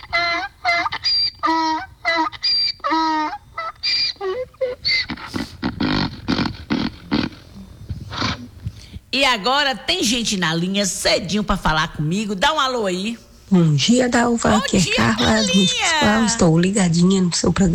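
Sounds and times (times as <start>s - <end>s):
donkey braying: 0.0s - 8.8s, 11.1s - 16.5s
speech: 9.2s - 17.7s.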